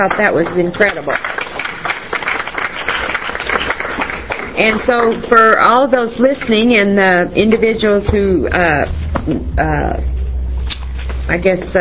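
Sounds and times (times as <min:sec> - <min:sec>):
speech: 0:00.0 - 0:01.4, 0:04.6 - 0:10.1, 0:11.3 - 0:11.7
audience applause: 0:00.0 - 0:04.8.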